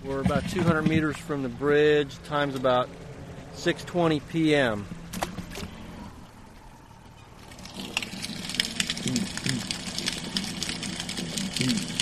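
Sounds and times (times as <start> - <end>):
speech: 0.1 - 5.0
snapping shrimp crackling underwater: 7.5 - 11.9.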